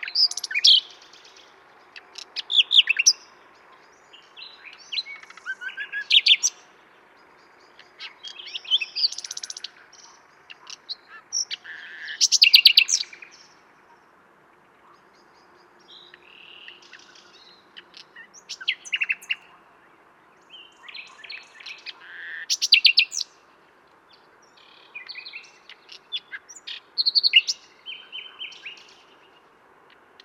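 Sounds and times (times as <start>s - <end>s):
common nightingale singing: 0.0s - 14.0s, 14.6s - 23.5s, 24.1s - 30.2s
hiss: 0.0s - 30.2s.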